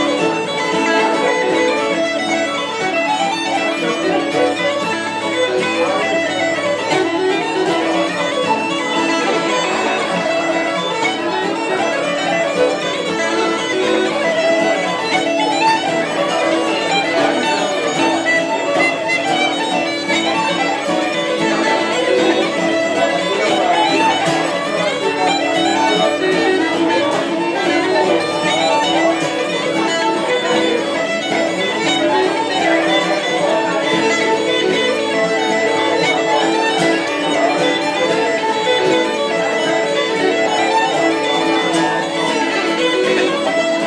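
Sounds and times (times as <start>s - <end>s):
birthday music: 0.0s - 43.8s.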